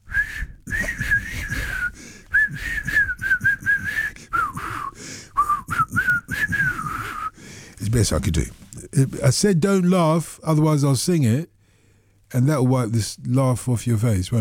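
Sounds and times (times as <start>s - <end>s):
person whistling a tune: 0.1s - 7.4s
speech: 7.9s - 11.5s, 12.3s - 14.3s.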